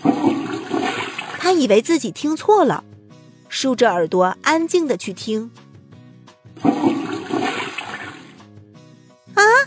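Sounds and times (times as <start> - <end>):
toilet flushing: 0.0 - 1.6, 6.6 - 8.4
speech: 1.5 - 2.9, 3.5 - 5.6, 6.6 - 7.0.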